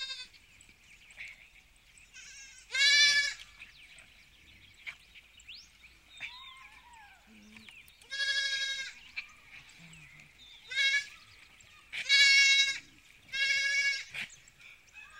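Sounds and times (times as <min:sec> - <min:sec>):
sheep bleating: 0:00.0 - 0:00.3, 0:02.2 - 0:03.4, 0:08.1 - 0:09.0, 0:10.6 - 0:11.1, 0:12.0 - 0:14.1.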